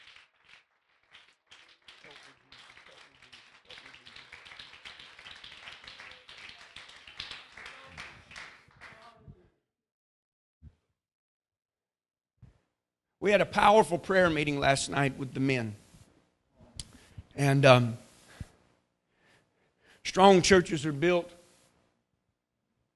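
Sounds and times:
church congregation clapping hands in worship: 0.0s - 9.2s
speech: 13.2s - 15.8s, 17.4s - 18.0s, 20.2s - 21.4s.

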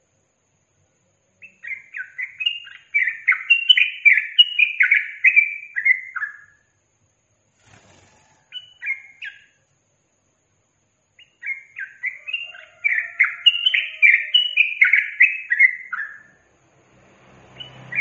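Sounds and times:
Yellow-vented bulbul song: 1.2s - 6.8s, 7.9s - 9.7s, 10.4s - 16.6s.

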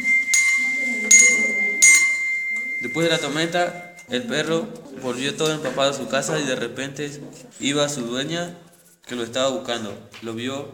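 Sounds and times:
bells ringing: 0.0s - 4.1s
speech: 2.9s - 10.7s.

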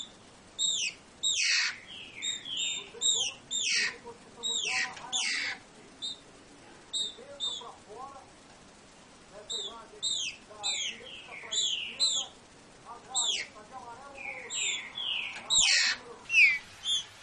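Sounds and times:
green-winged saltator singing classic song: 0.0s - 6.2s, 6.9s - 7.7s, 9.5s - 12.4s, 13.2s - 13.5s, 14.2s - 17.2s.

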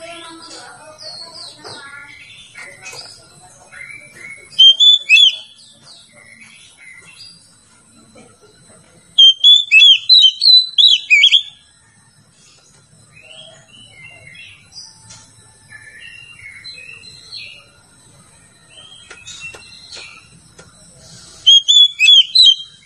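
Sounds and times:
Oriental magpie-robin singing: 0.0s - 7.5s, 9.1s - 11.6s, 15.7s - 17.8s, 18.6s - 20.4s, 21.3s - 22.8s.

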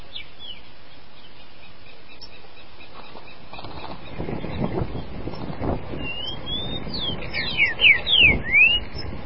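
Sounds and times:
green-winged saltator song: 0.1s - 3.1s, 6.0s - 9.1s.

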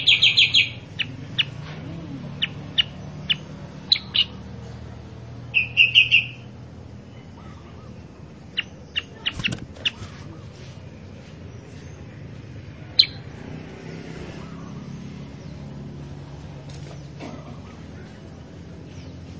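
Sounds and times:
Sooty-headed bulbul calls: 0.0s - 4.5s, 5.5s - 10.4s, 12.9s - 13.3s.

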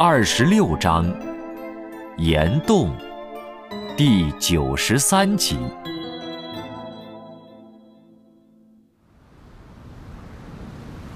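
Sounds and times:
speech: 0.0s - 1.3s, 2.2s - 3.1s, 4.0s - 6.0s
crashing ocean waves: 9.2s - 11.1s.

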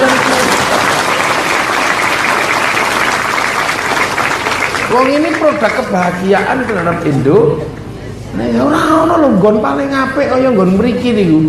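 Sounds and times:
loud crowd applause: 0.0s - 7.1s
speech: 4.9s - 11.4s.

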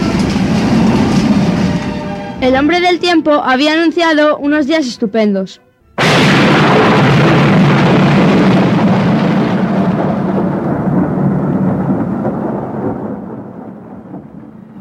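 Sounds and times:
rain falling at night on a mountain: 0.0s - 2.4s, 6.0s - 14.8s
loud thunderclap rolling into a deep rumble: 0.0s - 3.2s, 6.0s - 14.8s
speech: 2.4s - 5.6s.

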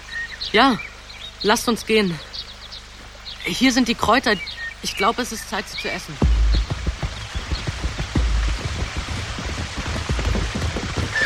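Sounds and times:
speech: 0.5s - 2.3s, 3.4s - 6.7s
horse hooves galloping: 6.2s - 11.2s.

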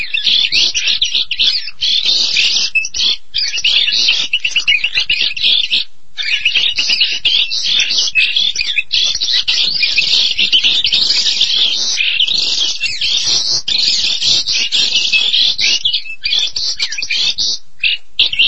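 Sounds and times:
starling song: 0.0s - 17.6s.

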